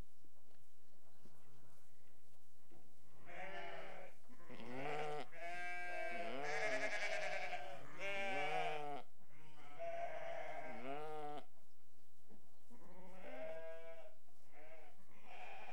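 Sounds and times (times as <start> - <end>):
restless sheep bleating: 3.3 - 11.5, 12.9 - 15.7.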